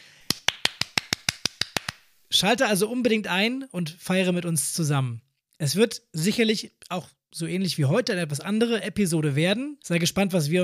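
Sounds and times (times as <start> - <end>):
small round of applause: 0.2 - 2.1
speech: 2.4 - 10.6.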